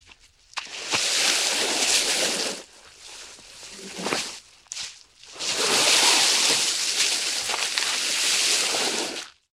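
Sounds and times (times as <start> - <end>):
heavy object dragging: 1.3 - 4.4, 5.4 - 9.2.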